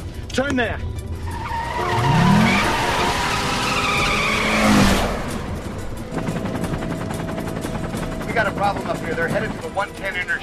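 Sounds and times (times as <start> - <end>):
speech: 0.4 - 1.0, 8.6 - 10.4
car tires screeching and skidding while swerving: 1.2 - 6.0
car engine roar: 1.2 - 9.8.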